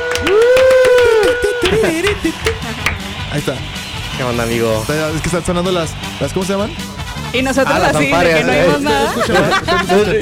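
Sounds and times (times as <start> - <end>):
applause in studio: 0.0 - 3.2
laughter: 0.4 - 3.1, 7.6 - 10.2
speech: 1.8 - 10.2.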